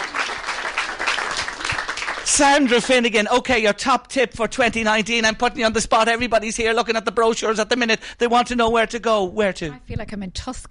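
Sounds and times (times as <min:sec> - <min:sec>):
audience applause: 0:00.0 - 0:03.3
speech: 0:02.3 - 0:10.6.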